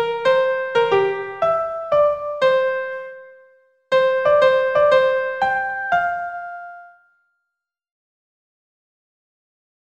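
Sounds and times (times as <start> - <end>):
melody at 120 BPM: 0.0 - 7.2.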